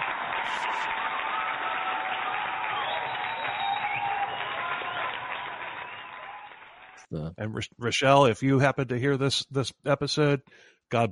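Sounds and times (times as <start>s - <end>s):
applause: 0.0s - 7.1s
speech: 7.1s - 11.0s.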